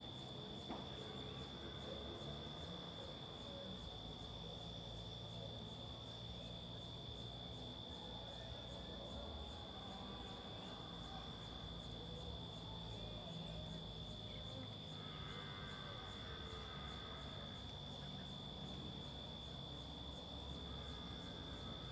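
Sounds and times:
crickets trilling: 0.1 - 21.9.

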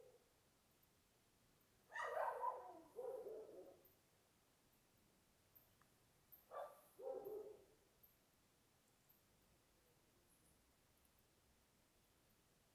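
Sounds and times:
dogs in a small town at night: 1.9 - 3.7, 6.5 - 7.6.

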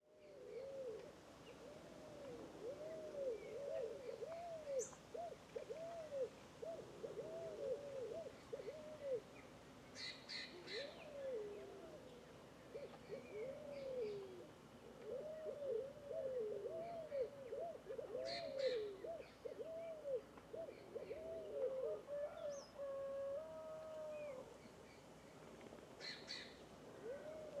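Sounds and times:
scaled doves calling together with arched cooing notes: 0.1 - 27.5.

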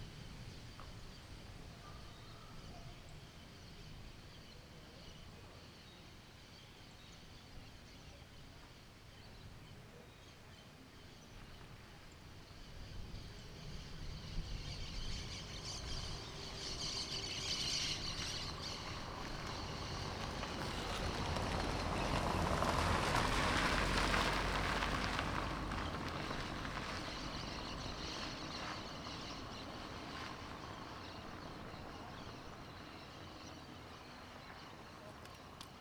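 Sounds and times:
car passing: 14.2 - 35.6.

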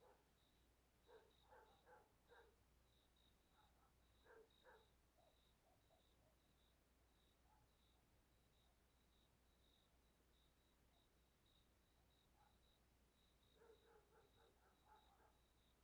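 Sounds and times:
distant dogs barking in a rural area: 0.0 - 0.3, 1.1 - 2.6, 3.5 - 6.1, 13.6 - 15.4
crickets chirping in front of a church at night: 0.0 - 15.7.

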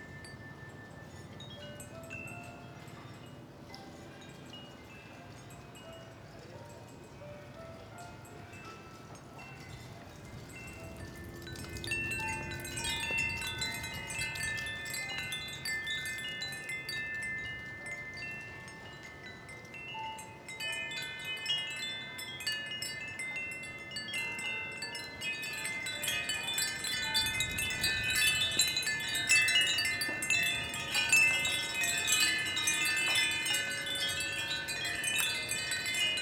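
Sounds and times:
wind chimes in a shop in strong wind: 0.0 - 36.2
strong wind: 9.5 - 19.0, 24.8 - 36.2.

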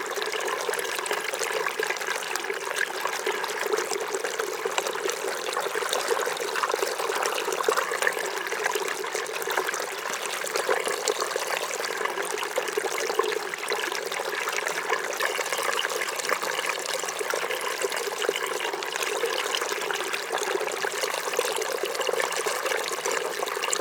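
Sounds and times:
small waterfall recorded very close: 0.0 - 23.7.

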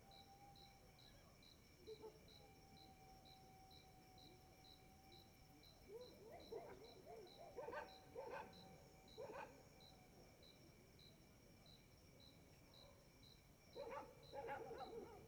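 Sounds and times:
dog barking while passing by: 6.3 - 8.6, 9.2 - 9.6, 13.8 - 15.2.

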